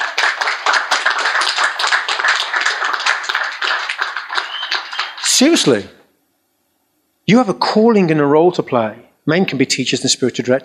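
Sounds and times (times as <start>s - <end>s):
audience applause: 0.0s - 5.7s
speech: 5.4s - 6.0s, 7.3s - 10.6s.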